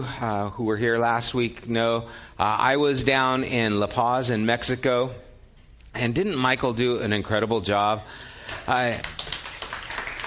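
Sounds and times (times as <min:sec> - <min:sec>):
speech: 0:00.0 - 0:05.3, 0:06.0 - 0:09.4
audience clapping: 0:08.4 - 0:10.2.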